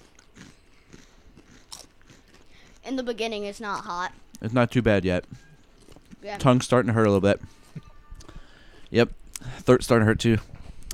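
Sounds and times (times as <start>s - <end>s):
tortilla chip being bitten and chewed: 0.0s - 2.8s
speech: 2.9s - 5.4s, 6.2s - 7.6s, 8.9s - 10.5s.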